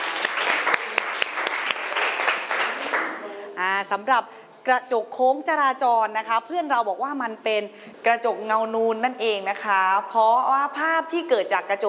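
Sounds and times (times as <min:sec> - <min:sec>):
group clapping: 0:00.0 - 0:03.3
speech: 0:03.8 - 0:11.8.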